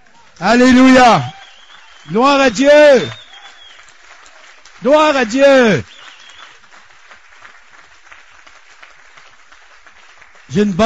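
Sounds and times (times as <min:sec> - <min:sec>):
audience applauding: 0:00.0 - 0:10.8
speech: 0:00.4 - 0:01.4, 0:02.0 - 0:03.2, 0:04.8 - 0:05.9, 0:10.5 - 0:10.8.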